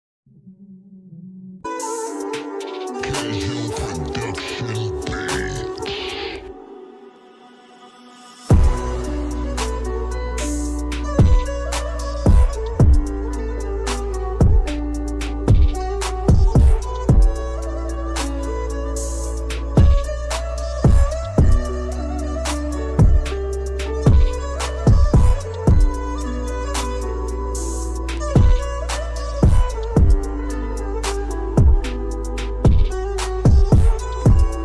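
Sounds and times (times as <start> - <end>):
slowed reverb music: 0.3 - 34.6.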